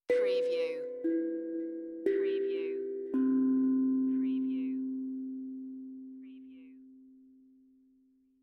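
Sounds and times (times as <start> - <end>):
meditative tongue drum tone: 0.0 - 7.5.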